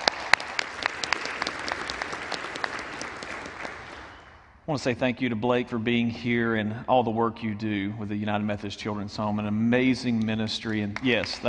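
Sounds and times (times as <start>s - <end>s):
room audience applause: 0.0s - 4.3s, 11.0s - 11.4s
speech: 4.7s - 11.4s.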